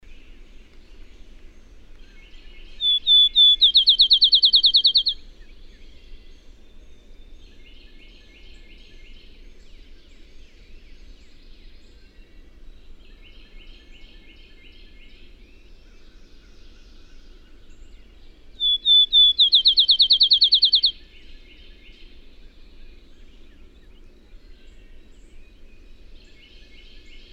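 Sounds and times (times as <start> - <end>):
bird song with drawn-out whistles and fast trill: 2.8 - 5.2, 18.6 - 21.0.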